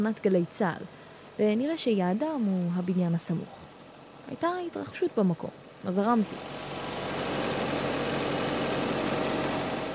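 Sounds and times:
speech: 0:00.0 - 0:03.7, 0:04.3 - 0:06.6
crane noise: 0:00.0 - 0:09.9.

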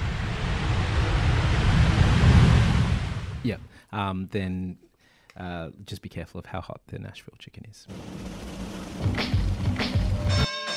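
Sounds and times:
plane landing sound effect: 0:00.0 - 0:03.4, 0:07.9 - 0:10.5
speech: 0:03.5 - 0:09.4.

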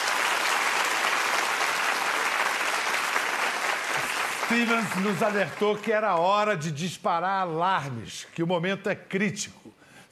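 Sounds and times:
studio audience applause: 0:00.0 - 0:06.1
speech: 0:04.5 - 0:10.1.

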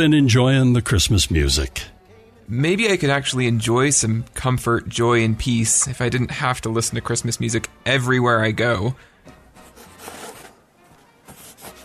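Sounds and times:
speech: 0:00.0 - 0:01.9, 0:02.5 - 0:09.1
pen scratching on paper writing notes: 0:09.7 - 0:10.6, 0:11.3 - 0:11.8.

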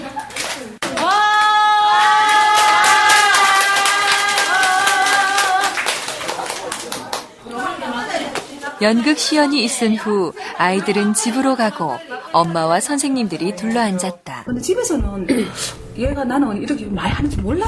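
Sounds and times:
mothers clapping: 0:00.3 - 0:07.3
speech: 0:08.8 - 0:17.6.

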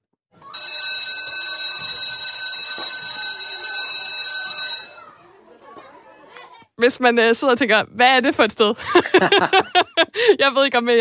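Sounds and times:
electric school bell ringing for recess: 0:00.4 - 0:05.2
laughter: 0:05.0 - 0:06.7, 0:08.8 - 0:10.4
speech: 0:06.8 - 0:10.9.

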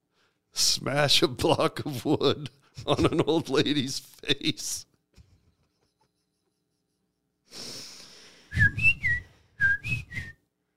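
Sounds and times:
speech: 0:00.8 - 0:04.9
person whistling imitating a bird: 0:08.5 - 0:10.4.

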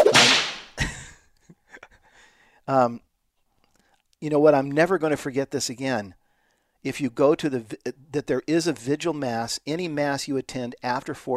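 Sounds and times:
whip crack sound effect: 0:00.0 - 0:00.8
speech: 0:02.7 - 0:03.1, 0:04.2 - 0:06.2, 0:06.8 - 0:11.3.

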